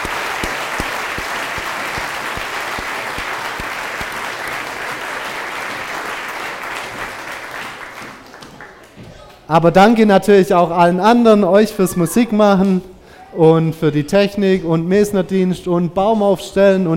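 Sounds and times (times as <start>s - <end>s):
audience applause for children: 0.0s - 9.0s
speech: 9.5s - 16.9s.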